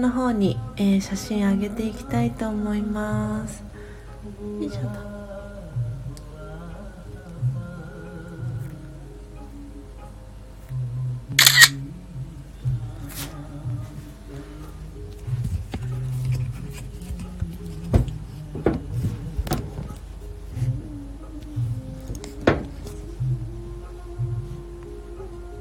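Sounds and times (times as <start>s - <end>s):
speech: 0.0s - 3.7s, 4.3s - 5.1s
low steady hum: 0.0s - 25.6s
camera shutter firing during a coffee roasting session: 11.4s - 11.8s.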